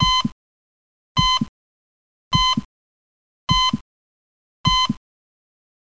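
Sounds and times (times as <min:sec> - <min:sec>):
low heartbeat: 0:00.0 - 0:00.4, 0:01.2 - 0:01.5, 0:02.3 - 0:02.7, 0:03.5 - 0:03.8, 0:04.7 - 0:05.0.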